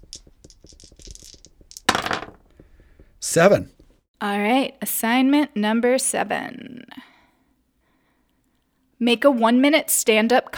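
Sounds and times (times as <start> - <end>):
two dice being rolled: 0.0 - 3.9
speech: 3.4 - 6.7, 9.0 - 10.5.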